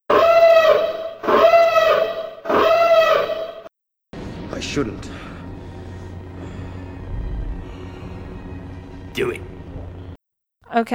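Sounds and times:
spoiler warning siren sound effect: 0.1 - 3.7
speech: 4.6 - 5.3, 9.2 - 9.5, 10.7 - 10.9.

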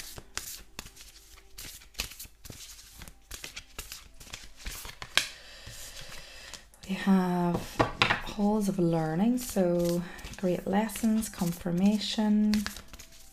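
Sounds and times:
reading cards being shuffled and drawn from a deck: 0.0 - 6.6, 9.3 - 13.3
card snap: 4.6 - 5.4
speech: 6.9 - 7.8, 8.4 - 12.8.

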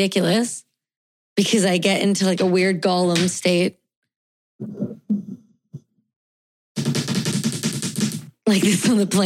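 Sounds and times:
speech: 0.0 - 0.7, 1.4 - 3.8, 4.6 - 5.2, 8.5 - 9.2
rapid typing on a keyboard: 6.8 - 9.2.

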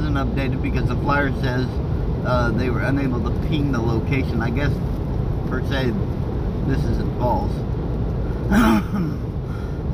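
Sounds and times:
low steady rumble: 0.0 - 9.9
speech: 0.2 - 4.9, 5.5 - 7.7, 8.5 - 9.3
person coughing: 8.5 - 9.2.

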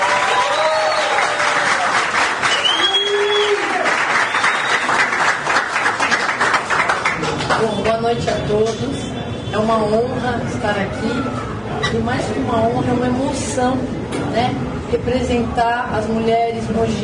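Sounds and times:
faint whistles and cheers: 0.0 - 5.2
crowd applause: 0.0 - 7.8
speech: 8.1 - 17.0.

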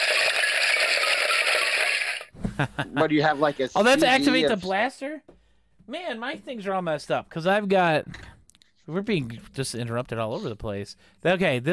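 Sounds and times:
skeleton bones rattling sound effect: 0.0 - 2.3
speech: 2.6 - 5.3, 5.9 - 8.2, 8.9 - 11.7.

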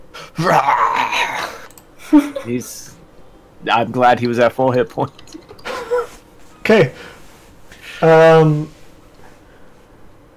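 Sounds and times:
speech: 0.4 - 1.5, 2.1 - 3.0, 3.6 - 5.5, 6.7 - 7.2, 8.0 - 8.8
voice imitating a loud dragon roar: 0.4 - 1.5.

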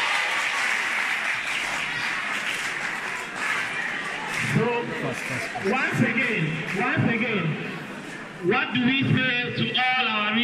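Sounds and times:
audience applause: 0.0 - 7.0
speech: 4.6 - 7.8, 8.4 - 10.4.

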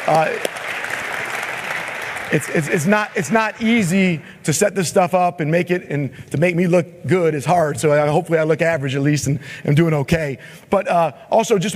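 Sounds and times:
audience applause: 0.0 - 4.2
speech: 0.1 - 0.6, 2.3 - 11.7.

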